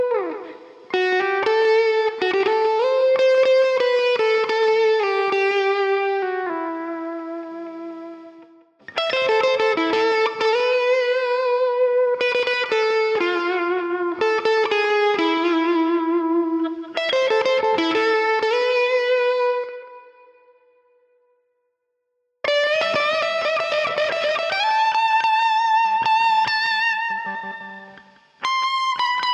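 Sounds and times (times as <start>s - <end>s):
lead guitar: 0.0s - 21.4s, 22.4s - 29.3s.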